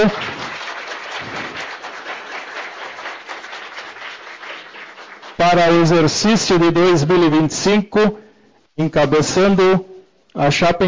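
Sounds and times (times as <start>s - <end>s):
speech: 0.0s - 0.2s, 5.5s - 8.2s, 8.8s - 10.8s
applause: 0.0s - 6.2s.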